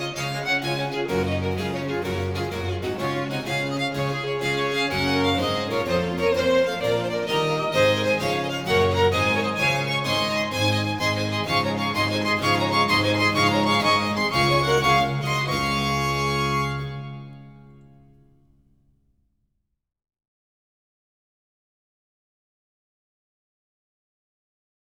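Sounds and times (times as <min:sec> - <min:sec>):
three violins playing: 0:00.0 - 0:18.3
basso continuo: 0:00.0 - 0:18.6.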